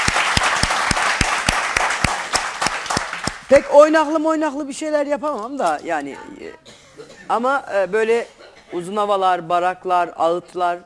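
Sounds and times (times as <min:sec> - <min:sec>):
applause: 0:00.0 - 0:03.6
speech: 0:03.5 - 0:10.8.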